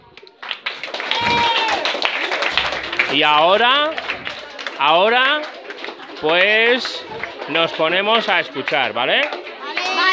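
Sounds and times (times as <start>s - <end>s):
audience applause: 0.2s - 10.1s
excited voices cheering: 0.9s - 8.7s
speech: 3.1s - 4.0s, 4.8s - 5.5s, 6.2s - 9.4s.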